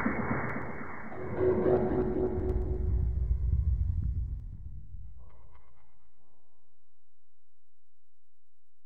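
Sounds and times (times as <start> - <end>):
deconstructed music piece in A Ionian at 60: 1.1 - 4.0.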